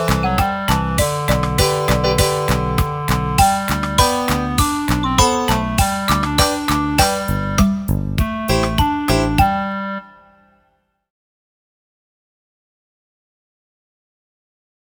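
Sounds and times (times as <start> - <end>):
karaoke backing track: 0.0 - 9.5.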